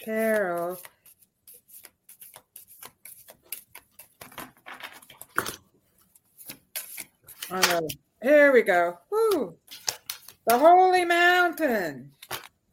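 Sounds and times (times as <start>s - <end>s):
speech: 0.0s - 1.0s, 7.5s - 9.7s, 10.4s - 12.2s
deck of cards being reshuffled during a card reading: 0.0s - 5.5s, 6.3s - 8.0s, 9.6s - 10.7s.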